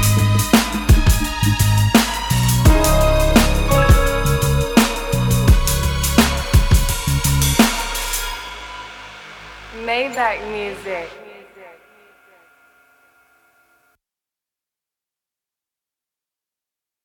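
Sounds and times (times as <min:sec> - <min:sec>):
instrumental type beat: 0:00.0 - 0:08.6.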